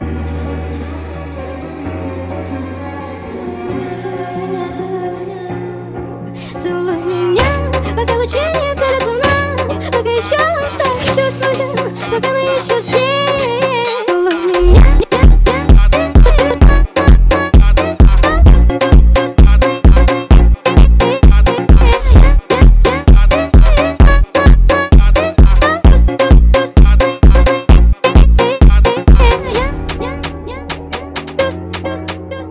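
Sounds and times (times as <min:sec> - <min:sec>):
phonk music: 0:07.4 - 0:32.4.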